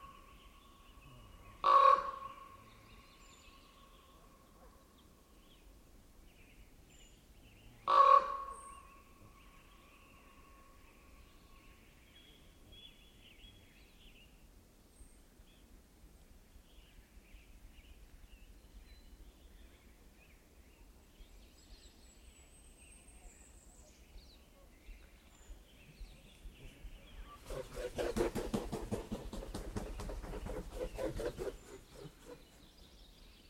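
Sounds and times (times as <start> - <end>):
ravens croaking: 1.6 - 2.3, 7.9 - 8.5, 27.4 - 32.6.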